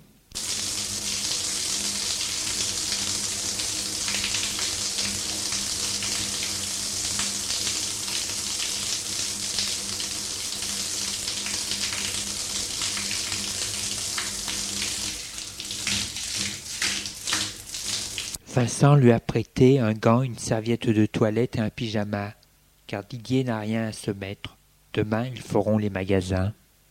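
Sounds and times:
water running from a bathroom tap as someone washes: 0.4 - 18.4
speech: 18.6 - 26.6.

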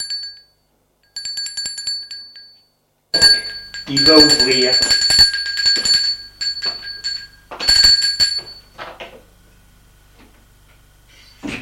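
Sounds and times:
doorbell ringing: 1.1 - 8.8
speech: 3.9 - 5.0.

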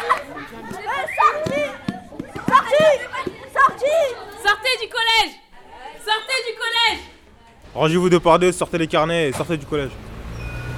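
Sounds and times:
pupils shouting during a wrestling class: 0.0 - 7.2
speech: 7.8 - 10.1.

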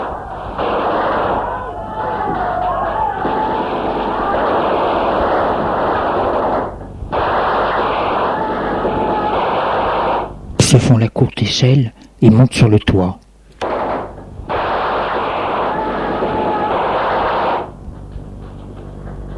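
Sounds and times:
gunfire: 0.0 - 1.6, 3.2 - 10.4, 13.6 - 17.7
wavering wail: 0.0 - 6.4, 7.2 - 10.3, 14.8 - 17.7
speech: 10.9 - 13.2.

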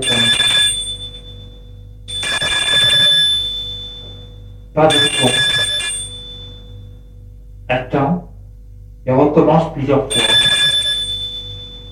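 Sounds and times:
electric doorbell ringing: 0.0 - 6.8, 10.1 - 11.9
low hum: 0.0 - 11.9
speech: 4.8 - 5.6, 7.7 - 8.3, 9.0 - 10.5.

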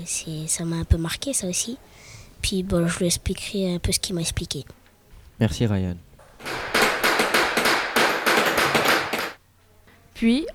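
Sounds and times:
speech: 0.0 - 4.8, 5.4 - 6.1, 10.2 - 10.5
hammer striking coins on a bronze die: 6.2 - 9.4.

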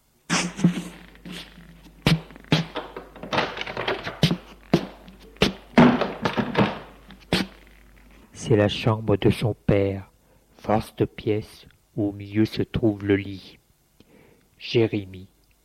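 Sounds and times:
door being opened: 2.5 - 7.2
speech: 8.5 - 10.1, 10.7 - 13.6, 14.6 - 15.3.

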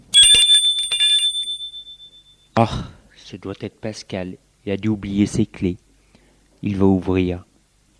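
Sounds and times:
doorbell ringing: 0.1 - 2.5
speech: 2.6 - 5.9, 6.6 - 7.5.

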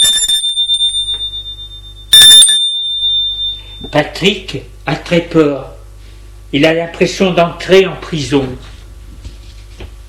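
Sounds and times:
apartment doorbell ringing: 0.0 - 4.0
speech: 3.9 - 5.7, 6.5 - 8.7.

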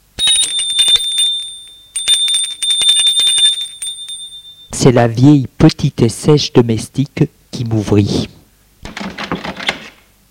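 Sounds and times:
electric doorbell ringing at front door: 0.0 - 4.8
speech: 4.8 - 8.4.

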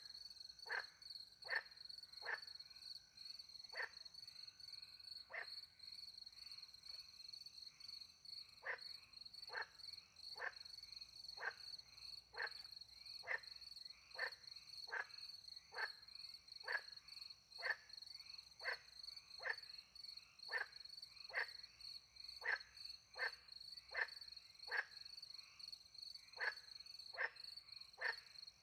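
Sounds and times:
frog croaks: 0.0 - 2.9, 3.6 - 28.6
crickets chorus: 0.0 - 28.6.

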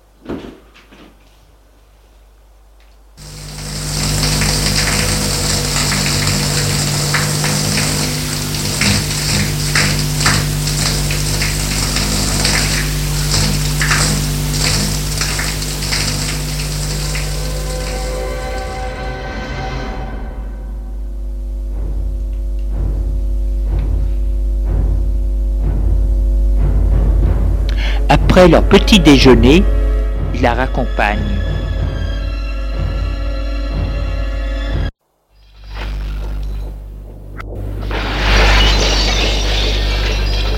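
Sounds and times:
shower water running: 3.2 - 19.8, 35.4 - 40.5
low humming drone: 3.2 - 40.5
speech: 28.4 - 29.8, 30.4 - 31.5.

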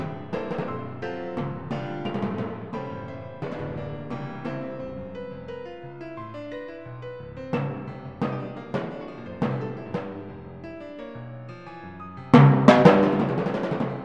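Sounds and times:
timpani: 0.0 - 5.6, 7.3 - 10.7, 12.3 - 14.0
piano: 0.0 - 14.0.

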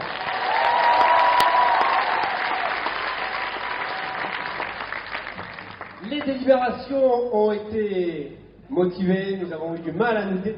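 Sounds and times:
audience applause: 0.0 - 6.3
speech: 6.3 - 10.5.

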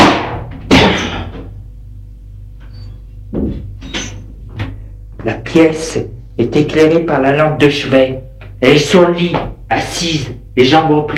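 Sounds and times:
heavy wooden door forced open with a shoulder: 0.0 - 1.3
speech: 5.2 - 11.1.

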